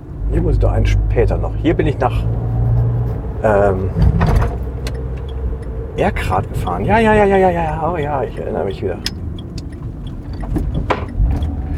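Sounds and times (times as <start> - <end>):
road and engine rumble of a fast-moving car: 0.0 - 11.7
speech: 0.3 - 2.4, 3.4 - 4.6, 6.0 - 9.2
loose, unsecured items creaking and knocking inside a fast-moving car: 3.9 - 11.7.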